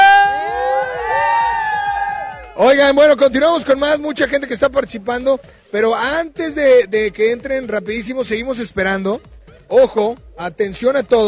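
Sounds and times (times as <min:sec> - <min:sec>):
crowd shouting and cheering: 0:00.0 - 0:03.2
speech: 0:02.6 - 0:11.2.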